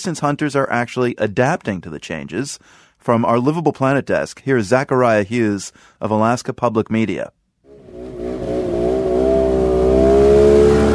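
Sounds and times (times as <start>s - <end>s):
speech: 0.0s - 7.4s
snow machines zipping by at the edge of town in Shishmaref: 7.8s - 10.9s.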